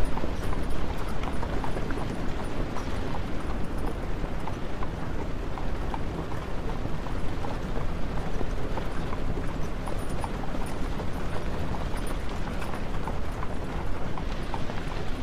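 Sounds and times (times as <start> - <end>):
horse and carriage: 0.0 - 15.2.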